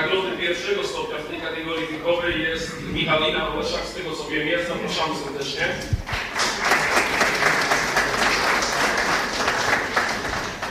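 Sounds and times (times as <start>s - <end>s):
speech: 0.5s - 6.2s
audience applause for award winner: 6.1s - 10.6s.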